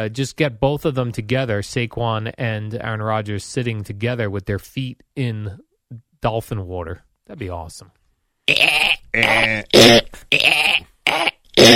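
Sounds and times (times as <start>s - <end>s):
speech: 0.0s - 10.6s
person vocally imitating dolphin noises: 8.5s - 11.7s.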